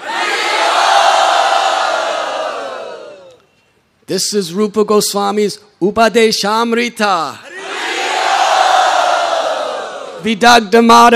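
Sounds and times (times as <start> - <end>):
crowd of devotees roaring: 0.0 - 3.4, 7.5 - 10.2
speech: 4.1 - 7.5, 10.2 - 11.1.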